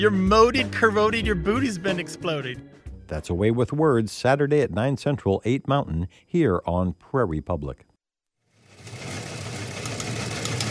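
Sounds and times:
speech: 0.0s - 7.9s
old newswire teletype machine clattering: 9.5s - 10.6s.

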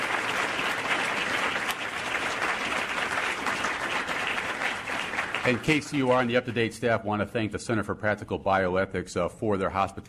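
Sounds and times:
audience applause: 0.0s - 6.7s
speech: 5.5s - 10.0s.

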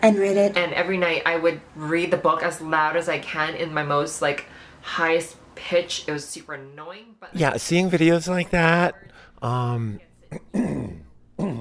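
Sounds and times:
speech: 0.0s - 11.5s
throat clearing by someone resetting their voice: 10.3s - 11.5s.

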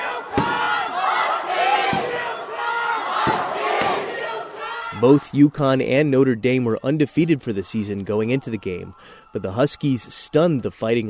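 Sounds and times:
UConn students cheering and yelling at a basketball watch party: 0.0s - 11.0s
sharp bangs: 1.7s - 2.4s, 3.1s - 4.2s
speech: 5.0s - 11.0s.

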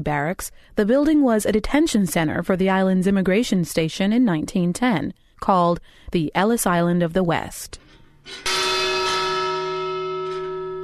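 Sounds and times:
speech: 0.0s - 8.5s
bell ringing: 8.3s - 10.8s.

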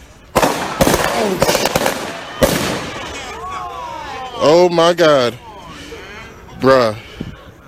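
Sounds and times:
police gunshots fired at a man on a balcony: 0.3s - 3.3s
speech: 1.2s - 1.8s, 4.4s - 5.4s, 6.6s - 7.1s.

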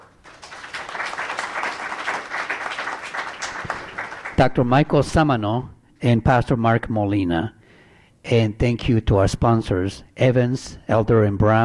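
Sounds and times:
audience applause: 0.0s - 4.4s
speech: 4.4s - 7.6s, 8.3s - 11.6s.

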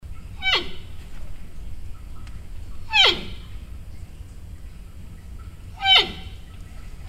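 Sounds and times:
quiet low rumble: 0.0s - 7.0s
giant panda squealing: 0.4s - 0.8s, 2.9s - 3.4s.

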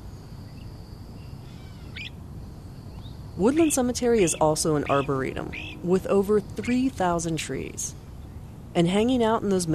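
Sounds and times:
birds calling in oak, magnolia and shagbark hickory trees: 2.9s - 8.7s
speech: 3.4s - 8.0s, 8.8s - 9.7s.

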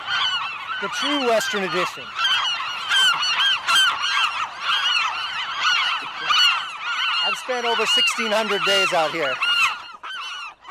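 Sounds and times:
gulls calling: 0.0s - 10.6s
speech: 0.8s - 2.2s, 7.5s - 9.5s.

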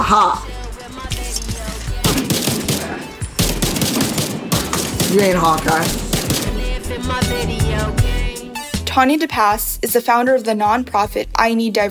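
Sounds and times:
speech: 0.1s - 0.5s, 5.1s - 6.0s, 6.9s - 8.1s, 9.0s - 11.8s
video game gunfire: 2.0s - 7.4s.

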